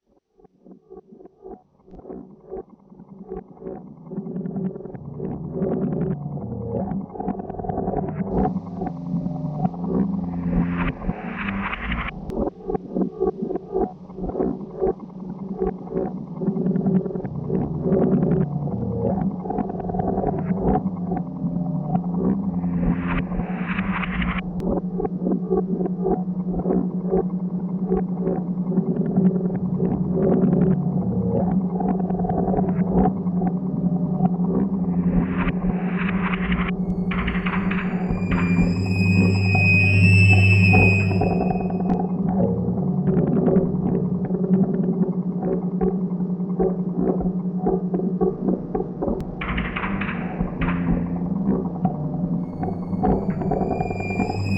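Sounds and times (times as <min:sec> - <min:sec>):
noise: 0:00.4 - 0:54.5.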